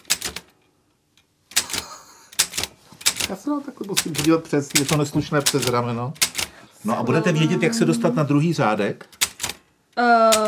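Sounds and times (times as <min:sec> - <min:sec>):
typewriter keys clacking: 0:00.0 - 0:00.5, 0:01.5 - 0:06.5, 0:09.1 - 0:09.6
speech: 0:03.3 - 0:09.2, 0:10.0 - 0:10.4.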